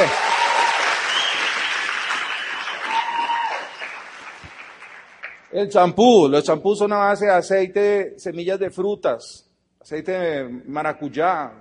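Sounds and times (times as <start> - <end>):
whistles and cheers: 0.0 - 4.7
audience applause: 0.0 - 5.5
speech: 5.6 - 11.5.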